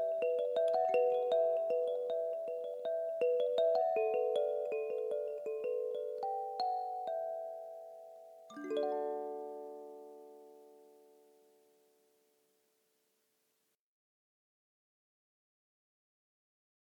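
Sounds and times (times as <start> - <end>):
mbira playing in D major: 0.0 - 11.5.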